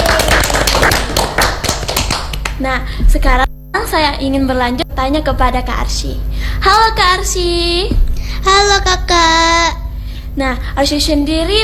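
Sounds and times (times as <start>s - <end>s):
audience applause at an interview-style event: 0.0s - 2.6s
speech: 2.6s - 9.8s, 10.4s - 11.6s.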